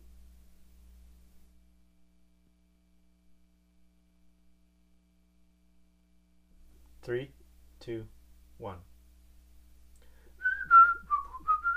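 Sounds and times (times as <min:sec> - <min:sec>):
speech: 0:07.1 - 0:08.9
whistled folk tune: 0:10.4 - 0:11.7.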